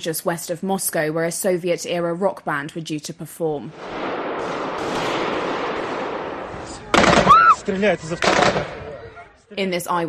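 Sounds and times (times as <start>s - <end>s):
speech: 0.0s - 4.6s, 7.7s - 8.8s, 9.5s - 10.0s
machine gun fire: 3.7s - 8.8s.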